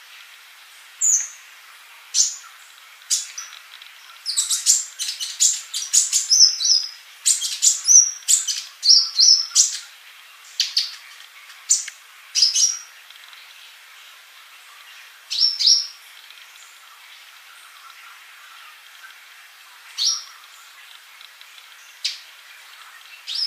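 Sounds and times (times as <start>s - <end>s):
faint steady hiss: 0.0s - 23.4s
bird chirping with warbled whistles: 1.0s - 1.4s, 2.0s - 23.4s.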